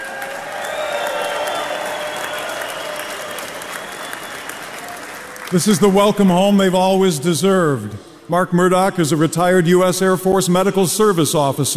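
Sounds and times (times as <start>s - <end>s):
cheers and whistles: 0.0s - 5.7s
large crowd applauding: 0.0s - 6.6s
speech: 5.5s - 11.7s.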